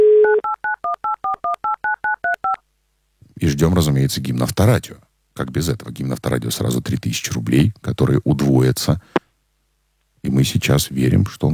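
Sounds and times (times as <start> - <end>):
steady telephone dial tone: 0.0 - 2.6
speech: 3.4 - 9.2, 10.2 - 11.5.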